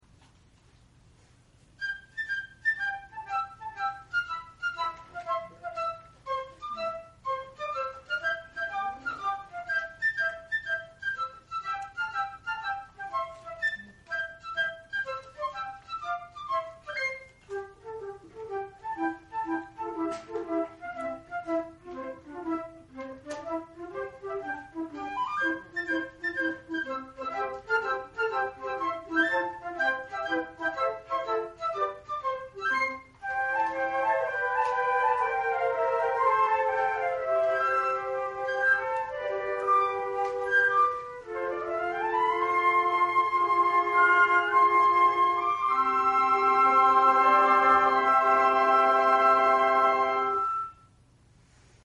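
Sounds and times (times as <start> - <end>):
flute at new year concert: 1.6 - 51.0.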